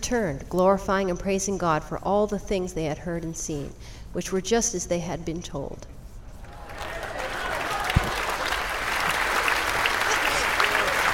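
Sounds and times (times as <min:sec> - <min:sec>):
speech: 0:00.1 - 0:06.0
large audience clapping: 0:06.5 - 0:11.1.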